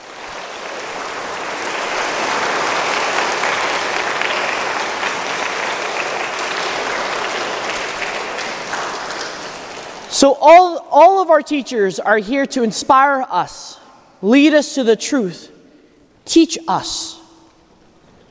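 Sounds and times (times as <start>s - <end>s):
school Mass congregation clapping for their teachers: 0.0s - 11.6s
speech: 10.2s - 15.5s, 16.3s - 17.2s.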